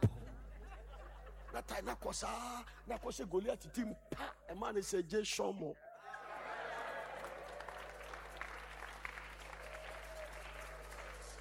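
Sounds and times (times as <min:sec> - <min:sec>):
laughter: 0:00.1 - 0:02.2, 0:05.9 - 0:07.6
speech: 0:01.6 - 0:05.8
audience clapping: 0:06.2 - 0:11.4.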